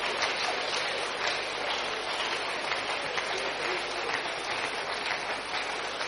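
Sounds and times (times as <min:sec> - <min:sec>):
people clapping: 0:00.0 - 0:06.0.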